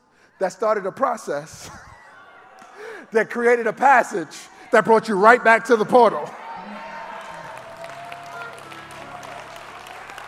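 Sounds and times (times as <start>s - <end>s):
speech: 0.4s - 1.9s, 3.1s - 6.4s
audience shouting: 6.4s - 10.2s.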